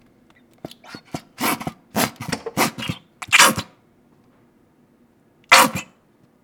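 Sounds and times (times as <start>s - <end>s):
ketchup bottle squeezing: 0.7s - 3.7s.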